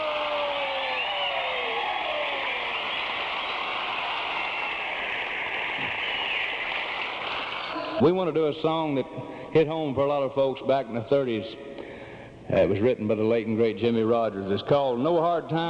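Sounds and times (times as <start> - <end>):
crowd applause: 0.0 - 8.0
faint whistles: 0.7 - 5.0, 5.6 - 6.8
speech: 8.0 - 11.8, 12.5 - 15.6.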